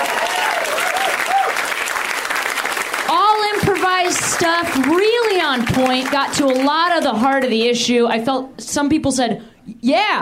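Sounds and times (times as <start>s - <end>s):
audience clapping: 0.0s - 7.8s
speech: 4.1s - 10.1s.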